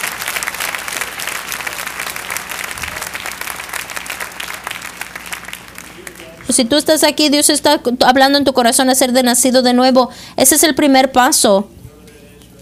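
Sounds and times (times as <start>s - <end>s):
audience applause: 0.0s - 6.6s
speech: 6.5s - 11.8s.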